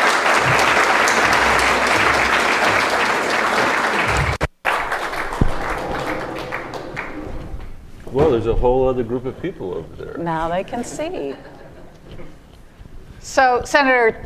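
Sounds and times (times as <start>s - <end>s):
audience applause welcoming Senator Michael Bennett at a CSIS event: 0.0s - 7.6s
speech: 8.4s - 11.6s, 13.3s - 14.2s.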